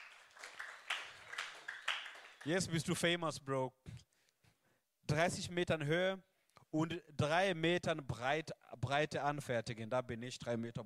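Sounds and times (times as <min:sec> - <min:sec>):
applause: 0:00.0 - 0:02.9
speech: 0:02.4 - 0:04.0, 0:05.1 - 0:10.8.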